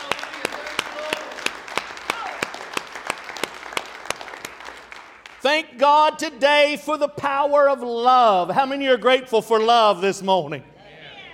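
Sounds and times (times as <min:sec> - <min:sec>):
audience hand clap of praise: 0:00.0 - 0:05.8
speech: 0:05.4 - 0:10.7.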